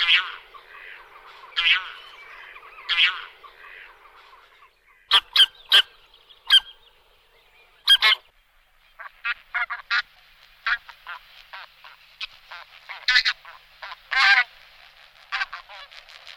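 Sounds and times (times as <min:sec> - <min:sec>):
bean goose flock honking: 0:00.0 - 0:06.9, 0:07.8 - 0:08.3, 0:09.0 - 0:16.3.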